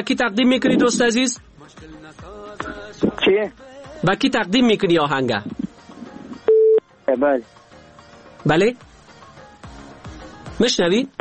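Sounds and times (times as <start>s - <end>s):
speech: 0.0s - 5.6s, 7.1s - 7.6s, 8.4s - 8.9s, 10.6s - 11.1s
low telephone tone after a caller's line is cut off: 6.4s - 6.8s.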